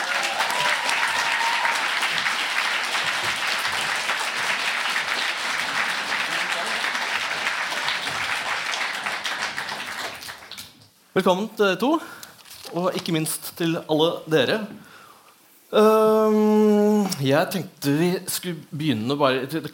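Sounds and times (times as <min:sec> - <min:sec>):
audience applause: 0:00.0 - 0:10.7
speech: 0:11.2 - 0:14.9, 0:15.7 - 0:19.7.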